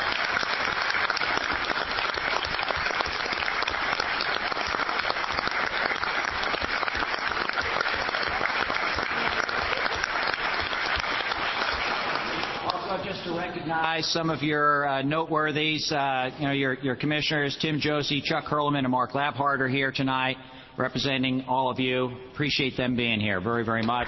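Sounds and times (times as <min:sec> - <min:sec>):
audience applause: 0:00.0 - 0:13.4
speech: 0:14.0 - 0:24.0.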